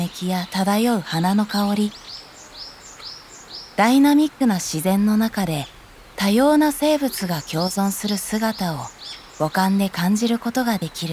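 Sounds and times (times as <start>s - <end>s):
birds calling in a primeval forest with giant tree ferns: 0.0s - 11.1s
soft hiss: 0.0s - 11.1s
speech: 0.1s - 2.2s, 3.8s - 11.1s.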